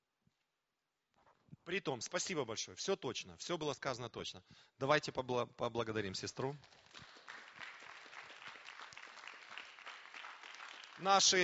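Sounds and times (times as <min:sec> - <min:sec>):
speech: 0:01.7 - 0:07.1, 0:11.0 - 0:11.4
audience applause: 0:06.7 - 0:11.4.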